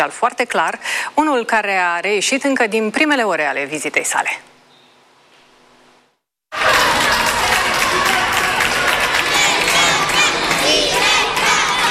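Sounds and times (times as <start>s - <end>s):
speech: 0.0s - 4.5s
large crowd cheering along a route: 6.5s - 11.8s.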